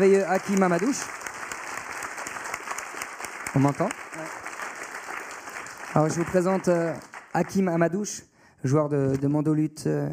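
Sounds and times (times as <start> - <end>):
speech: 0.0 - 1.2, 3.6 - 4.4, 6.0 - 10.1
audience applause: 0.0 - 7.9.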